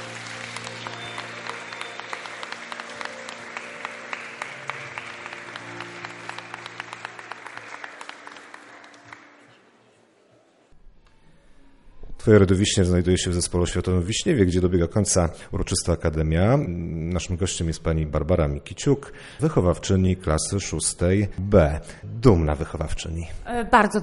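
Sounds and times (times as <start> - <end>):
audience applause: 0.0 - 9.7
speech: 12.2 - 24.0.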